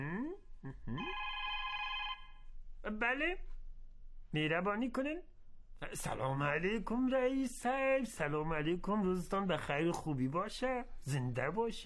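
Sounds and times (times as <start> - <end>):
telephone ringing with electronic ringtone: 1.0 - 2.4
speech: 3.0 - 3.5, 4.3 - 11.8.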